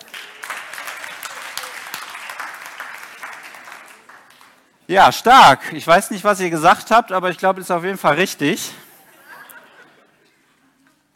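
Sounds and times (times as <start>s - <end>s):
crowd applauding: 0.0s - 4.8s
speech: 4.9s - 8.8s
laughter: 8.8s - 11.0s.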